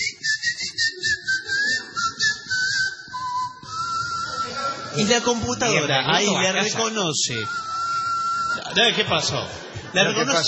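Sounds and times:
person whistling a short melody: 0:00.0 - 0:05.5, 0:07.4 - 0:08.8
speech: 0:05.0 - 0:07.7, 0:08.8 - 0:10.4
laughter: 0:07.7 - 0:10.4.

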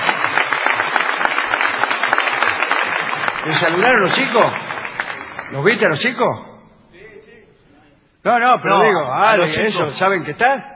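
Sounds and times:
applause: 0:00.0 - 0:05.9
speech: 0:03.6 - 0:04.8, 0:05.5 - 0:06.5, 0:08.2 - 0:10.7.

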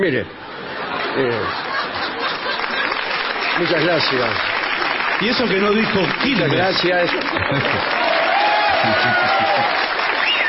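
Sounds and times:
speech: 0:00.0 - 0:00.4, 0:01.2 - 0:01.8, 0:03.6 - 0:04.6, 0:05.2 - 0:08.1, 0:08.8 - 0:09.9
laughter: 0:00.4 - 0:04.4, 0:05.4 - 0:10.2
audience applause: 0:01.7 - 0:10.4.

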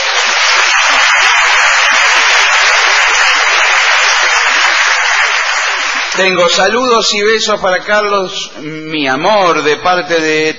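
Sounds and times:
audience applause: 0:00.0 - 0:06.6
speech: 0:06.2 - 0:10.5.

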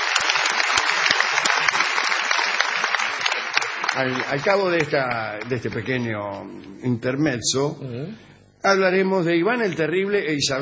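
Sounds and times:
audience applause: 0:00.0 - 0:06.1
speech: 0:04.0 - 0:10.5.

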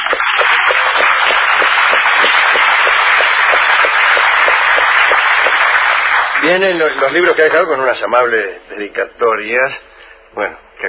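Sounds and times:
crowd applauding: 0:00.0 - 0:08.0
speech: 0:06.5 - 0:10.8.

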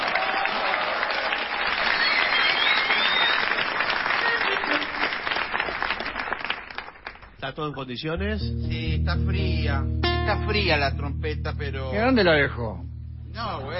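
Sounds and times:
audience applause: 0:00.0 - 0:07.4
speech: 0:07.5 - 0:13.7.

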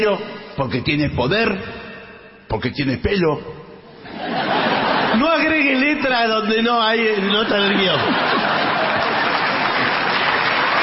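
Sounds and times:
speech: 0:00.0 - 0:01.8, 0:02.5 - 0:03.6, 0:05.2 - 0:08.4
laughter: 0:04.0 - 0:05.7, 0:07.4 - 0:10.8
audience applause: 0:07.9 - 0:10.8.

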